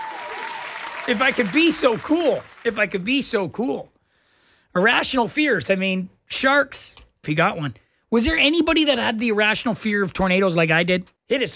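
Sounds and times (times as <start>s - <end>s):
audience applause: 0.0s - 3.2s
speech: 1.1s - 4.0s, 4.7s - 11.5s.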